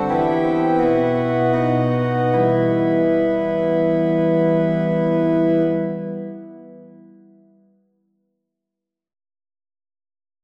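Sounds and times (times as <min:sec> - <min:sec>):
organ playing a hymn: 0:00.0 - 0:07.1.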